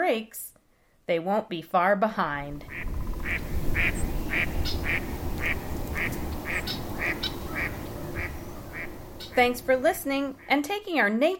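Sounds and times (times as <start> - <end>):
speech: 0.1 - 0.5, 1.1 - 2.9, 3.8 - 7.2, 9.4 - 11.3
hiss: 2.3 - 11.1
female mallard hen quacking: 2.6 - 10.5.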